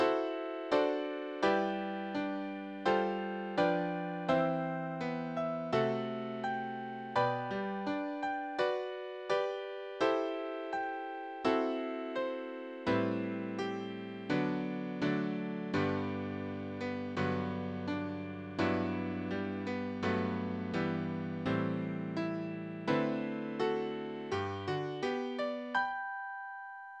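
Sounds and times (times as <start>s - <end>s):
easy piano piece: 0.0s - 26.8s.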